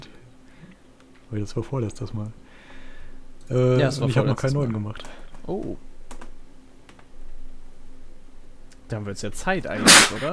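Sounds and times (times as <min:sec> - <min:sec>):
speech: 0:01.3 - 0:02.4, 0:03.5 - 0:05.9, 0:08.9 - 0:10.3
sneeze: 0:09.8 - 0:10.3.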